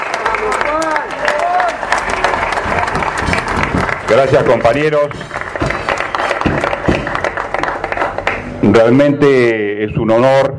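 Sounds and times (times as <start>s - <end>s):
audience applause: 0.0s - 9.0s
speech: 4.1s - 5.4s, 8.6s - 10.5s.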